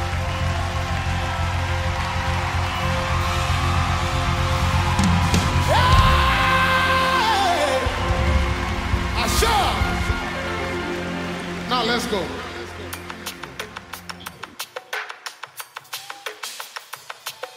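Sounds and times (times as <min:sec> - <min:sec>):
crowd clapping: 0:00.0 - 0:15.2
person shouting: 0:05.6 - 0:08.0
speech: 0:12.1 - 0:12.4.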